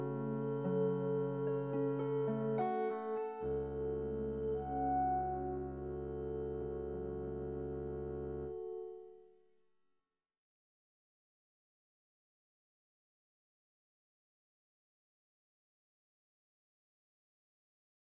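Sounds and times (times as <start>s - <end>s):
chord progression: 0.0s - 9.2s.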